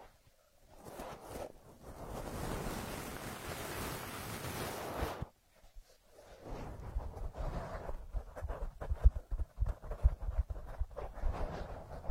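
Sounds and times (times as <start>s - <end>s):
ear massage rubbing across the mic: 0.8s - 12.0s
sharper scratchy bursts and taps: 8.1s - 11.2s.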